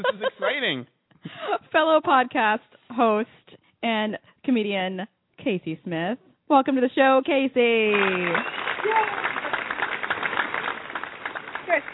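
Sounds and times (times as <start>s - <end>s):
speech: 0.0s - 9.3s, 11.7s - 11.9s
crowd clapping sound effect: 7.8s - 11.9s
whoops and cheers: 8.0s - 9.6s.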